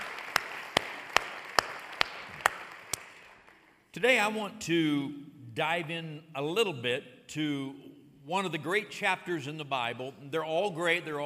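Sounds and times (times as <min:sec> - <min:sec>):
hand claps at a church service welcoming first-time guests: 0:00.0 - 0:03.7
speech: 0:04.0 - 0:11.2.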